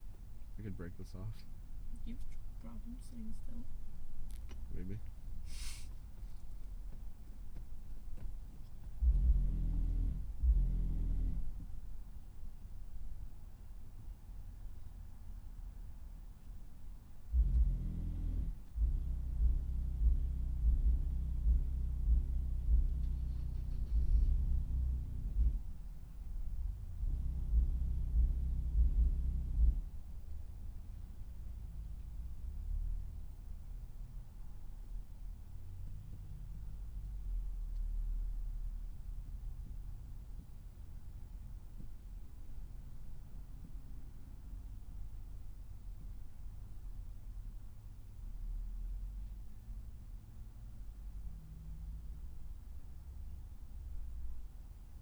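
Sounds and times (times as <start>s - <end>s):
car with strong bass: 0.0s - 54.9s.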